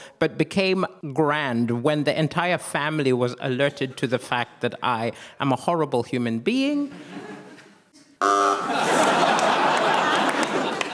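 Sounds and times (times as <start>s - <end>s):
speech: 0.2s - 7.3s, 8.2s - 9.3s
crowd laughing: 7.0s - 7.7s, 8.3s - 10.9s
low-pitched game show buzzer: 8.2s - 9.2s.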